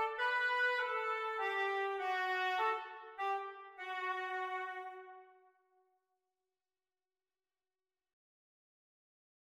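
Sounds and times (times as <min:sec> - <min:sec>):
oboe duet practice: 0:00.0 - 0:05.1.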